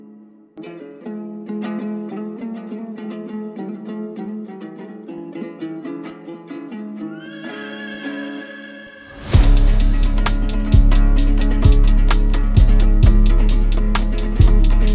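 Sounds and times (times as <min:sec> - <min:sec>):
Kyrgyz komuz remix: 0:07.4 - 0:14.9.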